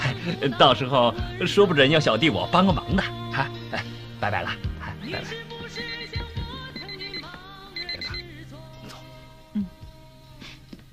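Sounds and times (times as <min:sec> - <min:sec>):
speech: 0:00.2 - 0:05.8
telephone ringing with a bright warbling electronic tone: 0:05.8 - 0:08.3.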